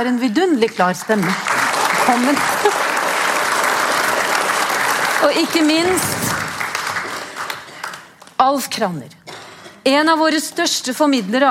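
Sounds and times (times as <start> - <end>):
speech: 0.0 - 2.9, 5.2 - 6.4, 8.4 - 9.2, 9.8 - 11.4
crowd applauding: 1.0 - 8.4.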